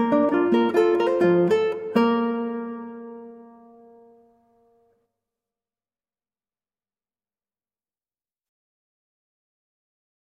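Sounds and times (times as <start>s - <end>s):
guitar playing affettuoso: 0.0s - 5.0s.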